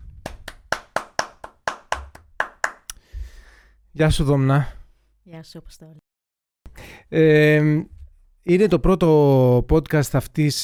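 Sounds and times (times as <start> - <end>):
applause, hands clapping: 0.2 - 3.0
speech: 4.0 - 6.1, 6.8 - 10.6.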